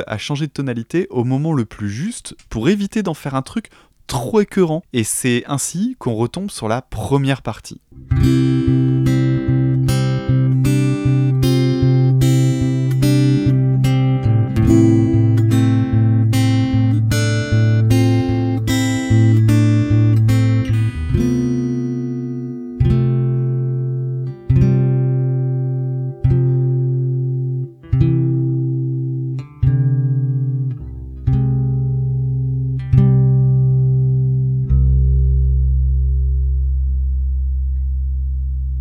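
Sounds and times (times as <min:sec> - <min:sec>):
speech: 0:00.0 - 0:08.7
melody played on guitar: 0:07.9 - 0:38.7.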